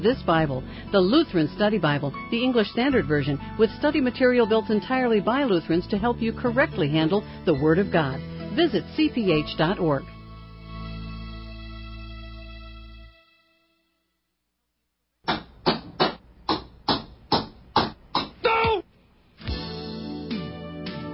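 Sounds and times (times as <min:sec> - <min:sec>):
speech: 0:00.0 - 0:10.1
music: 0:00.0 - 0:14.4, 0:19.4 - 0:21.1
hammer pounding a nail into a wooden door: 0:15.2 - 0:18.4.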